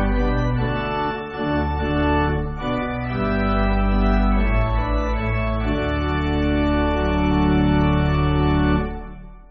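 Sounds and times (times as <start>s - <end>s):
pipe organ backing music for churches: 0.0s - 9.4s.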